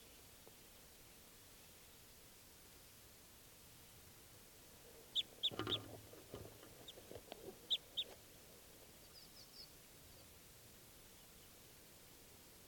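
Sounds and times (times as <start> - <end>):
wild bird calling: 5.2 - 8.2.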